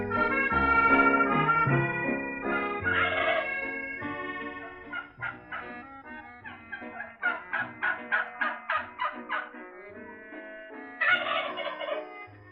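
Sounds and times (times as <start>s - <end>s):
turkey gobbling as a sound effect in a comic radio play: 0.1s - 12.3s.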